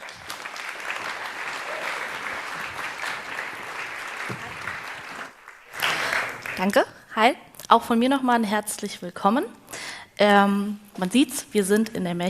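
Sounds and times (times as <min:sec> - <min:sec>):
audience applause: 0:00.0 - 0:06.7
speech: 0:06.6 - 0:12.2.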